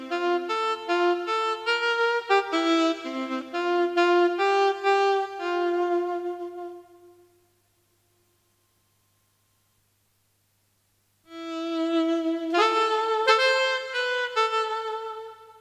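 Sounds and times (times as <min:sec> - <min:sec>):
alto saxophone playing Christmas carols: 0:00.0 - 0:07.6, 0:11.2 - 0:15.6.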